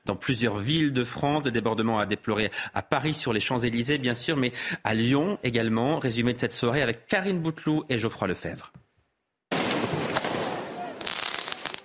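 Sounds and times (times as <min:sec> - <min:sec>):
speech: 0:00.1 - 0:08.8
firework mortar shots exploding: 0:09.5 - 0:11.8.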